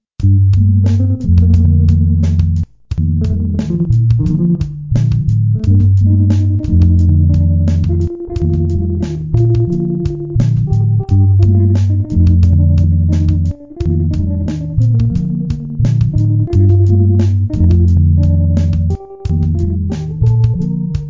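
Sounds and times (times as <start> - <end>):
background music: 0.3 - 21.0.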